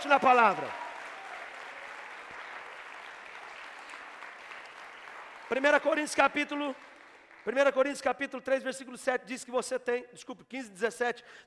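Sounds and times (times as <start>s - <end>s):
speech: 0.0s - 0.8s, 5.5s - 11.4s
audience clapping: 0.0s - 8.1s.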